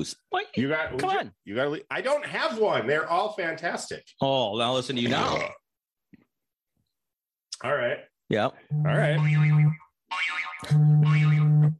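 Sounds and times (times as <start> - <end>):
speech: 0.0 - 5.6, 7.6 - 11.7
timer low buzzer drone: 8.7 - 9.8, 10.7 - 11.7
timer warbling boing-like electronic tone: 8.8 - 11.7.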